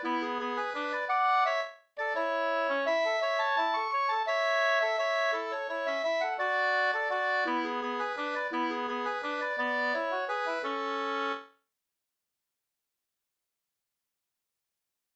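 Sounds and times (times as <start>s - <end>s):
waltz in A major: 0.0s - 11.4s.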